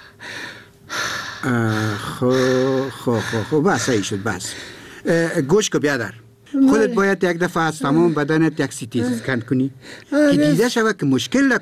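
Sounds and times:
patient taking deep breaths during a medical examination: 0:00.0 - 0:05.1, 0:09.8 - 0:10.1
speech: 0:01.4 - 0:11.6.

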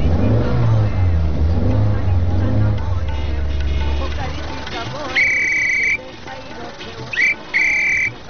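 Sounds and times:
car engine starting and revving: 0:00.0 - 0:08.2
short high-pitched whistling tones: 0:05.1 - 0:06.0, 0:07.1 - 0:08.2.

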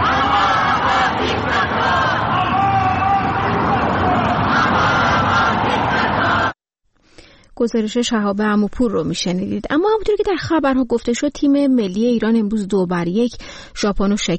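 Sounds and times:
crowd of Iranian protesters chanting slogans outside an Islamic Republic embassy: 0:00.0 - 0:06.6
speech: 0:07.6 - 0:14.3.

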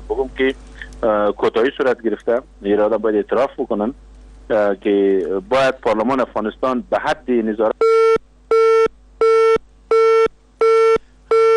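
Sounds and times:
speech: 0:00.1 - 0:07.7
telephone busy tone beeps after a dropped call: 0:07.8 - 0:11.5.

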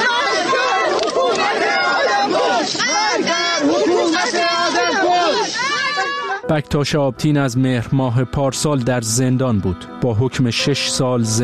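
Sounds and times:
crowd shouting at a funeral: 0:00.0 - 0:06.5
speech: 0:06.5 - 0:11.4.

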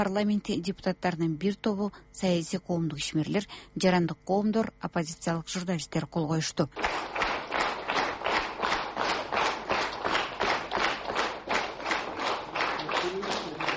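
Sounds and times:
speech: 0:00.0 - 0:07.3
rhythmic synchronized applause at an opposition gathering: 0:06.8 - 0:13.7.

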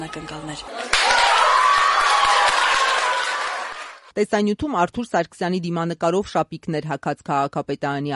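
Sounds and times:
speech: 0:00.0 - 0:01.2, 0:04.2 - 0:08.1
city hall staff clapping to congratulate the mayor: 0:00.7 - 0:04.1.

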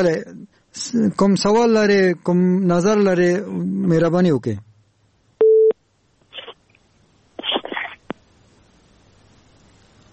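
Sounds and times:
speech: 0:00.0 - 0:04.7
faint noisy bursts: 0:00.0 - 0:10.1
telephone busy signal: 0:05.4 - 0:05.8.

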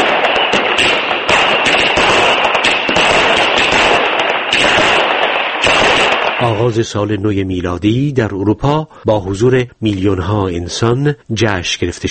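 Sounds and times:
fireworks exploding at New Year celebration: 0:00.0 - 0:07.0
speech: 0:06.6 - 0:12.1.

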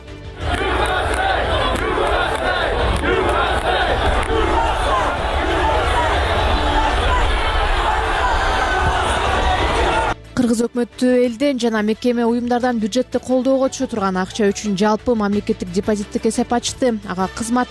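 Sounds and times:
crowd shouting and chanting during the riot at the US Capitol in Washington: 0:00.3 - 0:10.2
speech: 0:10.4 - 0:17.6.

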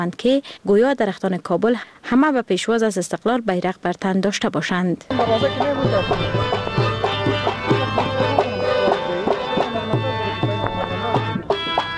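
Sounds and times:
speech: 0:00.0 - 0:06.6
band playing at Kabul's Chaman-e Huzuri Afghan Independence Day celebration: 0:05.1 - 0:11.9.

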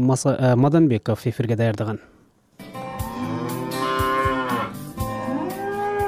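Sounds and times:
speech: 0:00.0 - 0:02.2
Simmental breeding cattle mooing on a farm at Issyk-Kul: 0:02.7 - 0:06.0.

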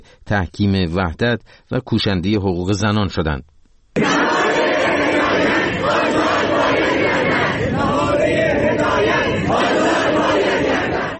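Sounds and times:
speech: 0:00.3 - 0:04.4
protesting students chanting slogans: 0:04.0 - 0:11.1.

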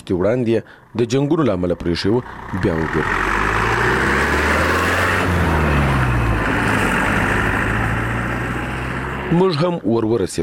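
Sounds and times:
speech: 0:00.1 - 0:03.3, 0:09.3 - 0:10.4
old motorcycle engine drone riding at high speed: 0:01.5 - 0:09.6.

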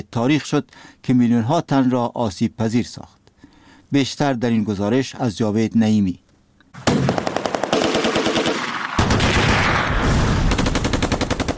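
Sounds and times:
speech: 0:00.0 - 0:03.2, 0:03.9 - 0:06.2
automatic gunfire in the streets: 0:06.8 - 0:11.5.

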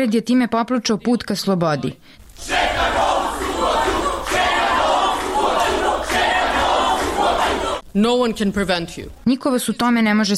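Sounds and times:
speech: 0:00.0 - 0:03.0, 0:08.0 - 0:10.3
large crowd shouting a protest chant in unison: 0:02.4 - 0:07.8.

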